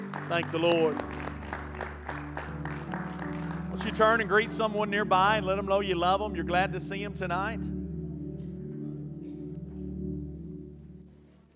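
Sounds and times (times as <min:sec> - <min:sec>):
audience hand clapping: 0:00.0 - 0:04.6
speech: 0:00.3 - 0:01.2, 0:03.8 - 0:07.8.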